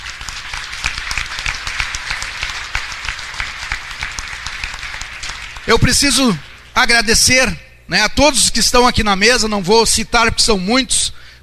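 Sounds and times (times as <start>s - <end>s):
applause: 0.0s - 6.7s
speech: 5.7s - 11.4s.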